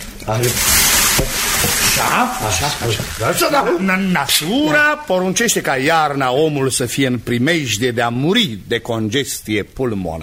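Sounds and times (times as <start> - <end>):
fire being doused with water, sizzling: 0.0 - 3.8
speech: 0.3 - 10.2.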